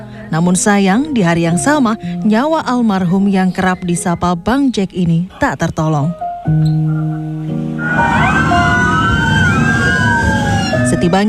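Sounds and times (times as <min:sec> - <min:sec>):
speech: 0:00.3 - 0:07.4, 0:11.0 - 0:11.2
continuous traffic rumble: 0:07.2 - 0:11.2
steady low tonal drone: 0:07.6 - 0:11.2
ambulance sirens escorting a funeral procession in Jakarta: 0:07.8 - 0:11.2.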